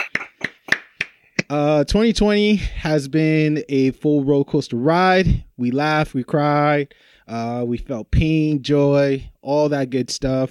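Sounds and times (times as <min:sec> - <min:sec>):
round of applause: 0:00.0 - 0:01.1
speech: 0:01.5 - 0:10.5.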